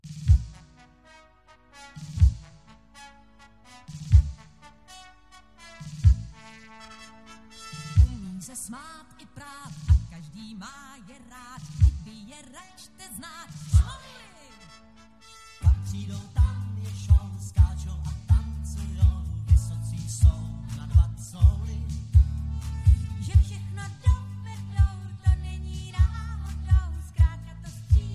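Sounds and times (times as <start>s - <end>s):
karaoke singing: 8.0s - 14.7s, 15.6s - 28.1s.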